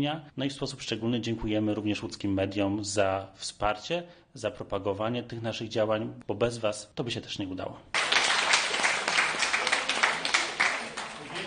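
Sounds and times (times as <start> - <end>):
speech: 0.0 - 8.0
audience applause: 8.0 - 11.4.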